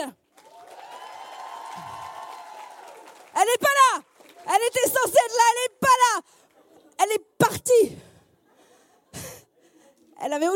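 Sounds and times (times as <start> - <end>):
audience applause at a live evening show: 0.3 - 4.5
speech: 3.5 - 5.7, 10.2 - 10.5.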